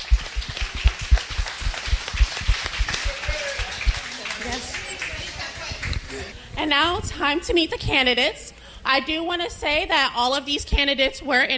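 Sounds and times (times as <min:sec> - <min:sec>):
audience applause: 0:00.0 - 0:06.3
speech: 0:06.6 - 0:11.5.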